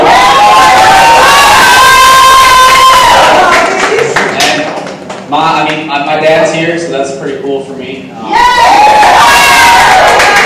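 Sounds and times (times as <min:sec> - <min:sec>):
crowd cheering and shouting for fathers at a Father's Day event: 0:00.0 - 0:04.1, 0:08.2 - 0:10.4
speech: 0:05.4 - 0:08.8.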